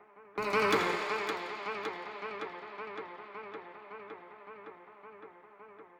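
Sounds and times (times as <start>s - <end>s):
ethno music in C: 0.4s - 3.6s.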